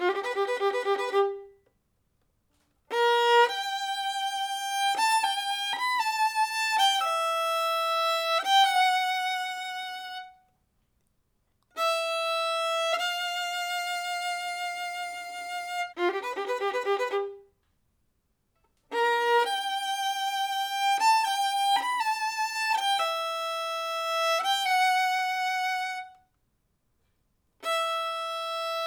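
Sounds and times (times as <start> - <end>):
violin: 0.0 - 1.7, 2.9 - 10.5, 11.7 - 17.5, 18.9 - 26.3, 27.6 - 28.8.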